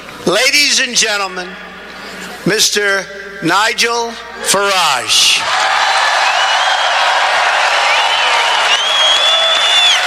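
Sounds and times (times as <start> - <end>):
speech: 0.3 - 1.7, 2.4 - 6.0
crowd cheering: 5.4 - 10.0.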